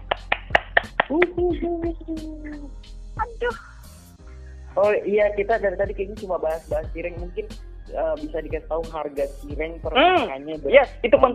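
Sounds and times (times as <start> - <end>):
hand claps: 0.0 - 1.9
person cheering: 0.8 - 2.8
speech: 1.1 - 3.8, 4.8 - 11.3.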